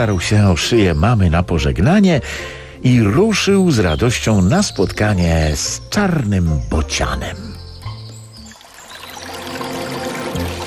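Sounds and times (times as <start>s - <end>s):
speech: 0.0s - 7.5s
mountain stream flowing: 8.1s - 10.6s.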